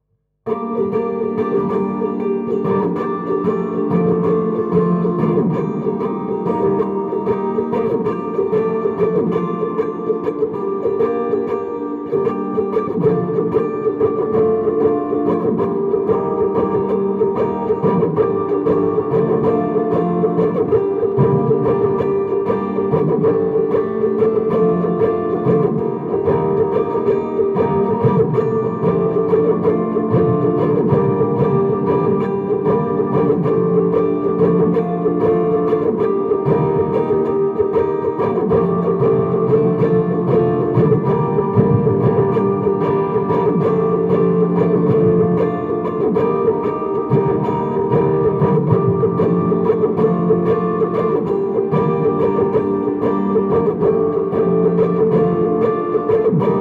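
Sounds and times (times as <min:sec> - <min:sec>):
guitar strumming with effects: 0:00.0 - 0:56.5.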